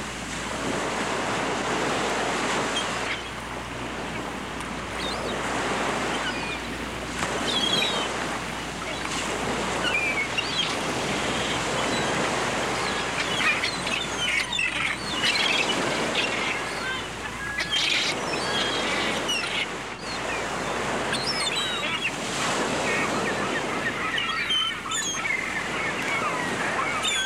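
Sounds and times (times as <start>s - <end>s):
gulls calling: 0.6s - 27.2s.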